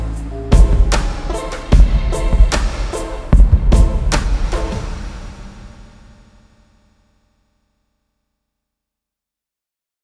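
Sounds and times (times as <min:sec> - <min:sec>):
dub music: 0:00.0 - 0:06.4.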